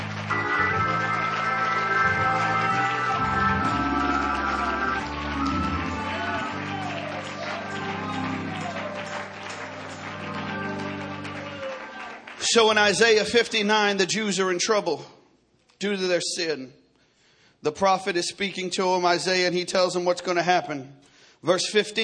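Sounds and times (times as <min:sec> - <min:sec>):
audience clapping hands in praise: 0:00.0 - 0:13.6
speech: 0:12.5 - 0:15.2, 0:15.8 - 0:16.8, 0:17.6 - 0:22.0.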